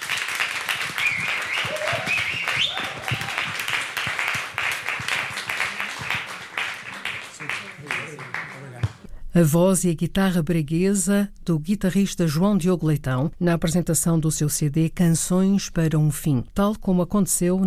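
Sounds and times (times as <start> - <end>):
audience applause: 0.0 - 9.1
speech: 9.4 - 17.6.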